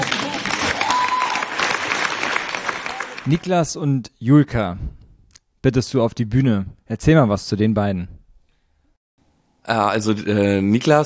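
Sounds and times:
audience applause: 0:00.0 - 0:03.4
speech: 0:03.2 - 0:05.0, 0:05.6 - 0:08.1, 0:09.6 - 0:11.0.

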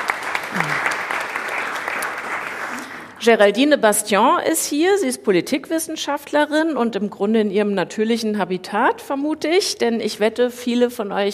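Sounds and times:
audience applause: 0:00.0 - 0:03.2
speech: 0:03.2 - 0:11.3.

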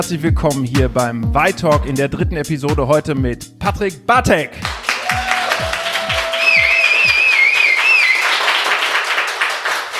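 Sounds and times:
speech: 0:00.0 - 0:04.8
live audience clapping at a talk event in the Y pop-up store in Berlin: 0:04.6 - 0:09.9.

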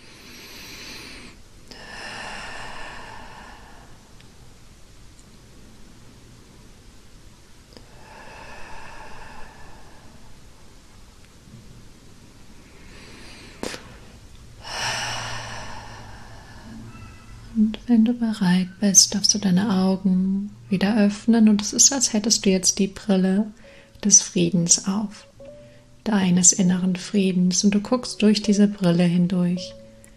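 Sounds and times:
slow breathing in and out during a guided meditation: 0:00.0 - 0:04.6, 0:07.8 - 0:10.9, 0:12.5 - 0:17.5, 0:23.6 - 0:24.0, 0:25.5 - 0:26.0
faint steady hiss: 0:00.0 - 0:30.1
speech: 0:17.6 - 0:25.3, 0:26.0 - 0:29.8.

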